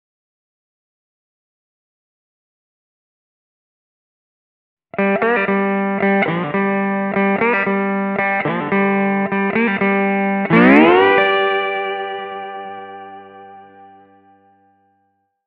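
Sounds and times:
slide guitar in G at 110 BPM: 5.0s - 14.3s.

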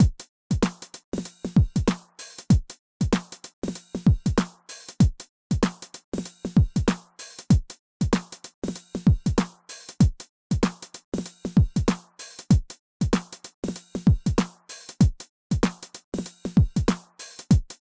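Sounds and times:
RD-8 drum machine: 0.0s - 0.8s, 1.6s - 3.4s, 4.0s - 5.8s, 6.6s - 8.4s, 9.0s - 10.8s, 11.5s - 13.4s, 14.0s - 15.8s, 16.5s - 17.9s.

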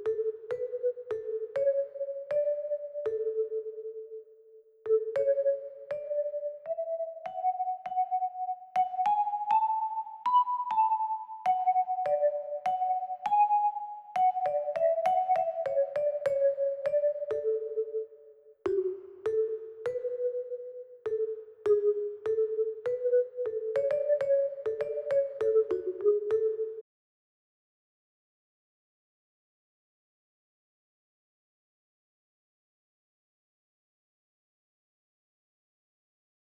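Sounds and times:
marimba: 0.0s - 26.8s.

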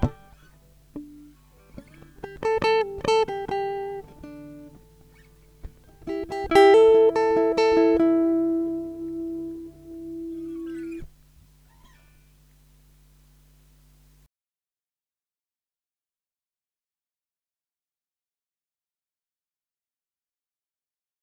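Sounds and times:
renaissance guitar improvisation in E minor: 0.0s - 13.3s.

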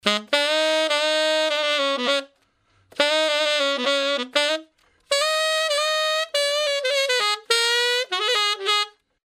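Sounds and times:
brass loop: 0.0s - 9.0s.

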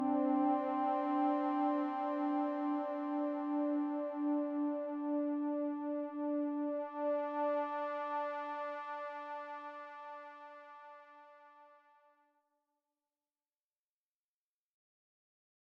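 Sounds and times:
synthesizer pad: 0.0s - 11.4s.

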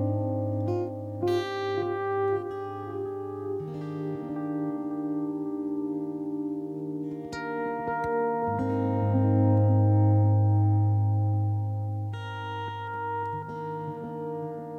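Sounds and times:
improvised electric guitar with volume pedal: 0.0s - 14.7s.

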